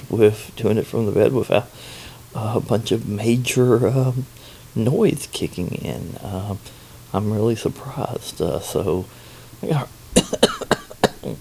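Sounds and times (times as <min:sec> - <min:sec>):
speech: 0:00.1 - 0:10.6
person in bed with an injured rib coughing: 0:10.2 - 0:11.3.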